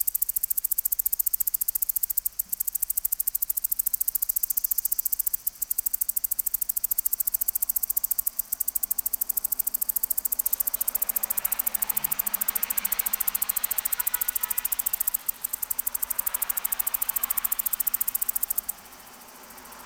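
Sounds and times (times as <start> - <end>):
cicada song of sharp high-pitched ticks: 0.0 - 19.8
soft rushing background: 6.4 - 19.8.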